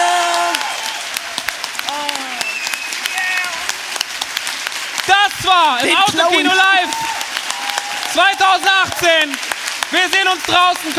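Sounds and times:
cheers and whistles: 0.0 - 1.3, 1.9 - 3.7, 6.6 - 9.3
audience applause: 0.0 - 10.9
speech: 5.5 - 6.7, 8.2 - 10.9.

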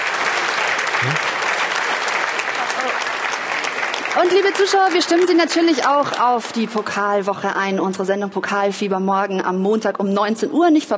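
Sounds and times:
audience applause: 0.0 - 6.1
speech: 1.0 - 1.3, 4.2 - 10.9.

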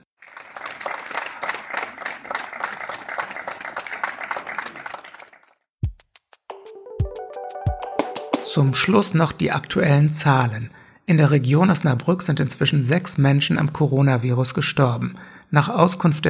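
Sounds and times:
residents applauding from balconies: 0.0 - 5.7
speech: 8.5 - 16.2.

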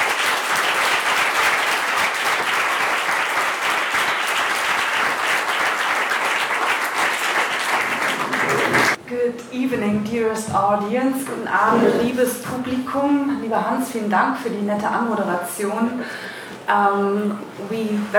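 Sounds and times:
audience applause welcoming guests: 0.0 - 9.0
speech: 9.7 - 18.1.

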